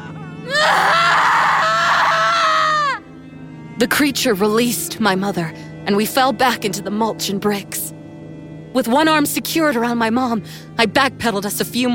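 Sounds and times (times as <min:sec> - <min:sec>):
woman screaming in pain: 0:00.4 - 0:03.0
speech: 0:03.8 - 0:08.0, 0:08.7 - 0:11.9.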